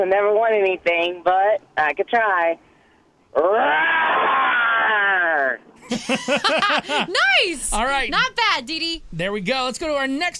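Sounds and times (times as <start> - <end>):
speech: 0.0 - 2.7, 3.3 - 10.3
person imitating a lion's roar: 3.5 - 5.6
laughter: 5.8 - 7.4.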